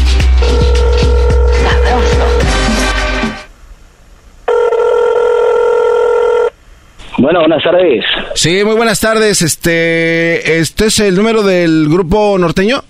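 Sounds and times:
telephone ringing: 0:00.4 - 0:02.6, 0:04.5 - 0:06.6
speech: 0:07.4 - 0:12.8.

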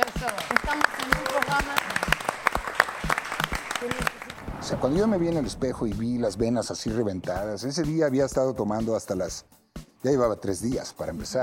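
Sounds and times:
studio audience applause: 0:00.0 - 0:04.4
speech: 0:03.8 - 0:11.4.

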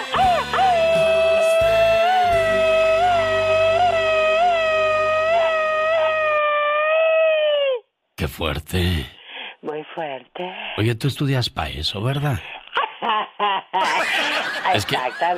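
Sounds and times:
soft music: 0:00.0 - 0:06.1
Mexican machine-gun yell: 0:00.0 - 0:07.8
speech: 0:08.4 - 0:09.2, 0:10.0 - 0:12.5, 0:14.7 - 0:15.3
laughter: 0:12.5 - 0:15.3.

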